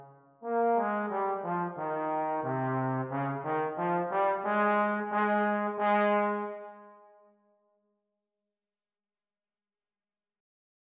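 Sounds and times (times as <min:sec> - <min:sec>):
Eb tenor horn duet playing: 0:00.6 - 0:06.8.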